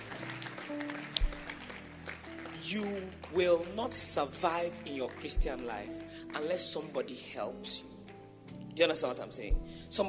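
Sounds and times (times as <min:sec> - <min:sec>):
crowd clapping hands: 0:00.0 - 0:07.1
speech: 0:02.7 - 0:07.9, 0:08.8 - 0:10.0.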